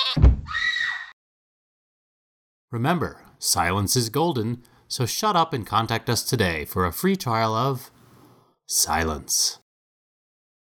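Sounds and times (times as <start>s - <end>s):
dull low thump: 0.2s - 0.5s
speech: 2.7s - 8.0s, 8.7s - 9.6s.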